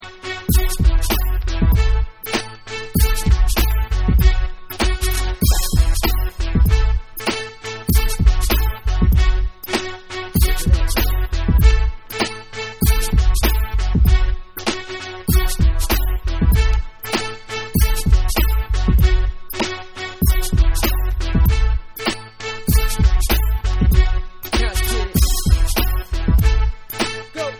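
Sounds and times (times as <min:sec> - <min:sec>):
instrumental music: 0:00.0 - 0:27.5.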